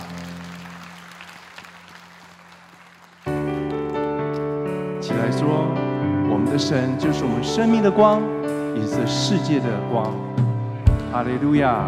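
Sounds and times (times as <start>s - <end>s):
audience clapping hands: 0.0s - 4.5s
speech: 5.3s - 5.8s, 6.4s - 10.4s, 11.1s - 11.8s.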